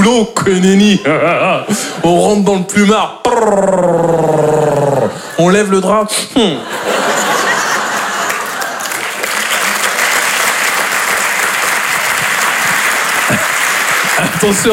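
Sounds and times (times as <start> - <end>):
speech: 0.0 - 4.2, 5.4 - 7.0, 14.4 - 14.7
people chuckling: 1.1 - 2.3, 3.3 - 5.5, 6.5 - 9.8, 12.1 - 14.7
large audience applause: 6.8 - 14.7.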